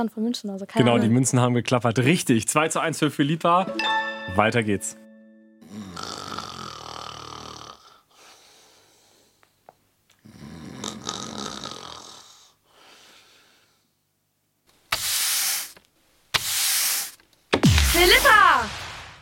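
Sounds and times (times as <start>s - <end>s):
speech: 0.0s - 5.0s
broom sweeping: 14.9s - 15.8s, 16.4s - 18.6s.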